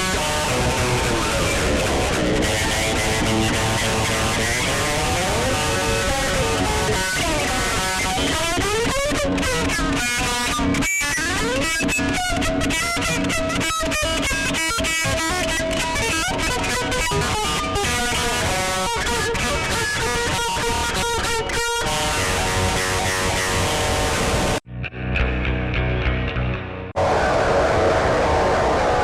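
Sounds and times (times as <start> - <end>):
lead guitar: 0.0 - 29.0.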